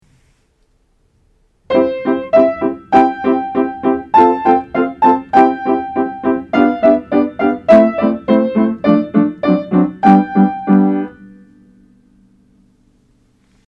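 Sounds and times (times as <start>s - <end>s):
music: 1.7s - 13.6s.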